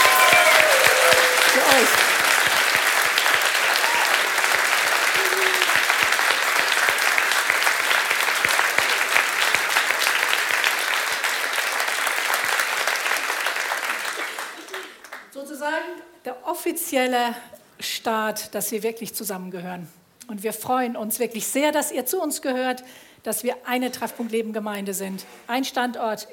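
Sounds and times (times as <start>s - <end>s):
audience applause: 0.0s - 15.3s
speech: 16.7s - 26.3s.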